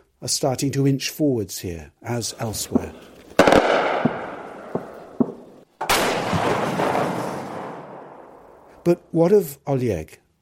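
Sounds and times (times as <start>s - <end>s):
speech: 0.2s - 3.1s, 8.9s - 10.2s
Ukrainian artillery firing at Russian positions near Kupiansk: 2.4s - 8.8s.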